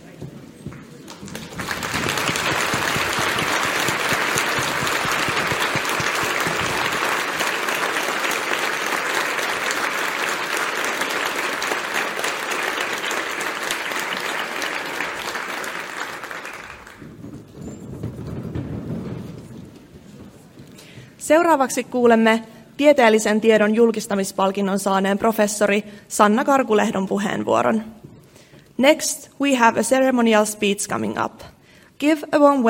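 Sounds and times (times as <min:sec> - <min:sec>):
audience applause: 0:01.0 - 0:17.4
speech: 0:21.3 - 0:28.0, 0:28.8 - 0:32.6.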